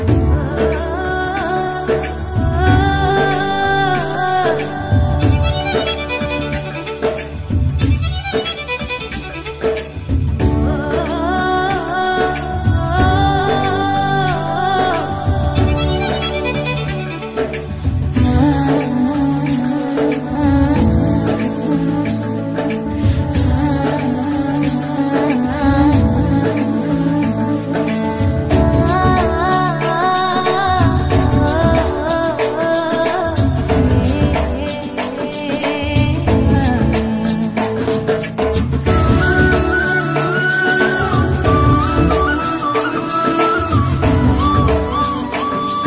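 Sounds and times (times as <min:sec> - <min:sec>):
sad background music: 0:00.1 - 0:45.8.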